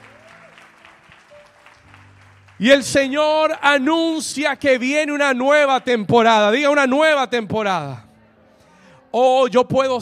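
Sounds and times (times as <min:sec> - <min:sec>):
audience applause: 0:00.0 - 0:03.1
speech: 0:02.6 - 0:08.1, 0:09.2 - 0:09.9.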